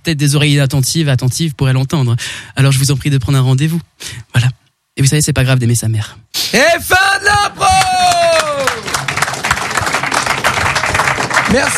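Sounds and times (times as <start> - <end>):
speech: 0.1 - 7.8, 11.5 - 11.7
audience applause: 7.5 - 11.7.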